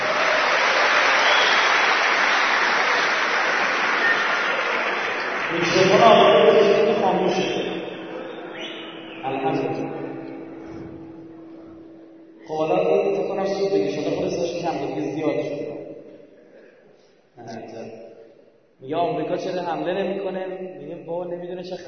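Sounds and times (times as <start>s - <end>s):
audience clapping on request: 0.0s - 10.3s
man speaking: 5.5s - 10.5s, 12.4s - 15.7s, 17.4s - 18.0s, 18.8s - 21.8s.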